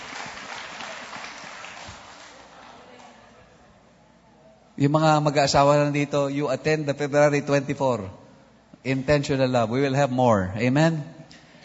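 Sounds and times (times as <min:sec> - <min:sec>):
church congregation applauding: 0:00.0 - 0:03.1
speech: 0:04.8 - 0:08.2, 0:08.8 - 0:11.2.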